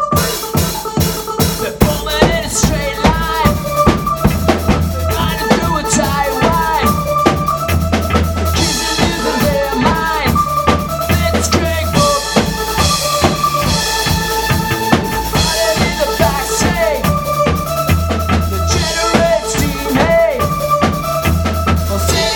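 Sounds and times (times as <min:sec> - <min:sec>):
techno music: 0:00.2 - 0:22.3.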